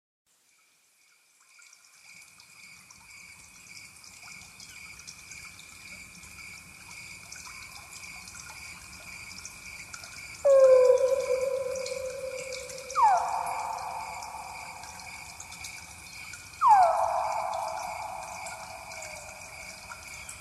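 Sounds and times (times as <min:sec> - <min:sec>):
nature sounds: 0:00.4 - 0:20.3
ambient music: 0:10.5 - 0:15.5, 0:16.6 - 0:19.5.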